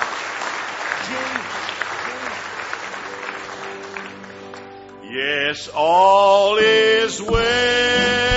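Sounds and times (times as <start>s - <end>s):
audience applause: 0.0s - 4.9s
speech: 5.2s - 8.2s.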